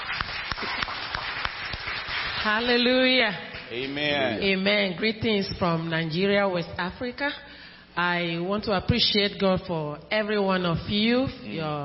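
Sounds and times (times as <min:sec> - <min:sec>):
audience clapping: 0:00.0 - 0:04.3
speech: 0:02.4 - 0:11.8.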